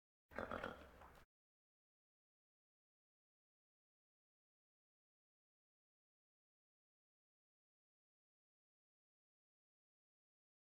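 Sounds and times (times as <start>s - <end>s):
farm animal grunts: 0.3s - 1.0s
farm animal snorts: 0.4s - 1.0s.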